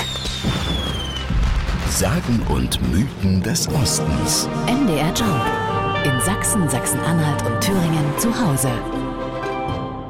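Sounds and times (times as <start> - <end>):
large fireworks display exploding: 0.0 - 2.7
speech: 2.0 - 9.0.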